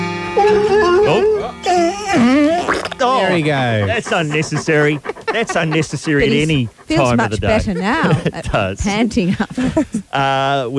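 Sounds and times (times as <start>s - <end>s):
radio station dog howling along to rock music: 0.3s - 8.2s
laughter: 1.8s - 10.1s
speech: 3.1s - 10.7s.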